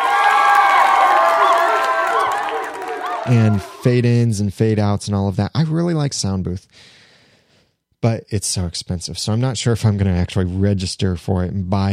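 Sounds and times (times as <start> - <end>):
clapping sound effect: 0.0 - 3.6
cheering sound effect: 0.0 - 4.2
speech: 3.2 - 7.0, 8.0 - 11.9.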